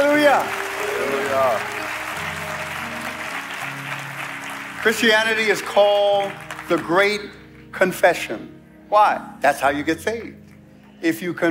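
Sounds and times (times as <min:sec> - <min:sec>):
audience applause: 0:00.0 - 0:07.0
organ or keyboard chords: 0:00.0 - 0:10.8
speech: 0:04.8 - 0:10.4, 0:11.0 - 0:11.5.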